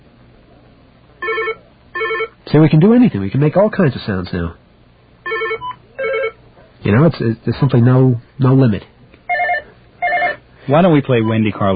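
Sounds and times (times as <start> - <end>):
speech: 2.5 - 4.6, 6.9 - 8.9, 10.7 - 11.7
telephone ringer tone: 5.3 - 6.4, 9.3 - 10.4.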